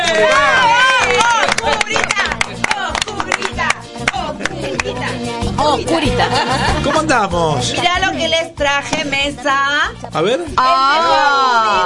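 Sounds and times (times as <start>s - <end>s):
studio audience applause at Radio Continental: 0.0s - 5.0s
laughter: 4.2s - 7.6s
speech: 6.1s - 11.8s.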